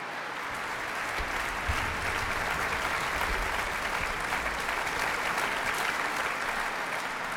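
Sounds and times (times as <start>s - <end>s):
concert audience applause in a hall: 0.0s - 7.3s.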